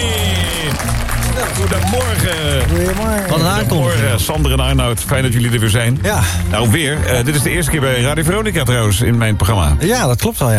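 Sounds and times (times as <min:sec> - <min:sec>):
audience applause for a band: 0:00.0 - 0:08.5
speech: 0:01.4 - 0:10.5.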